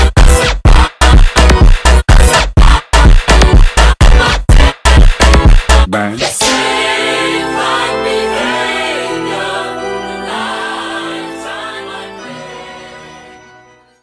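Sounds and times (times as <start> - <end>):
phonk funk music: 0.0 - 10.5.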